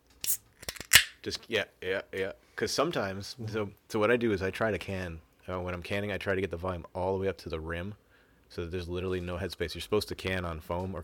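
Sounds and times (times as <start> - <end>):
wine bottle being opened: 0.2 - 1.2
speech: 1.2 - 11.0.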